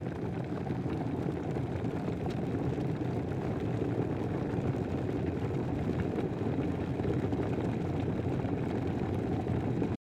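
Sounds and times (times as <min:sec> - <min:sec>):
boiling water: 0:00.0 - 0:10.0.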